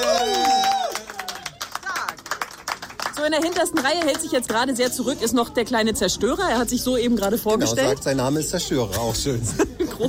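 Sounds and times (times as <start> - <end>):
audience applause: 0.0 - 4.6
speech: 3.2 - 10.0
laughter: 9.3 - 10.0.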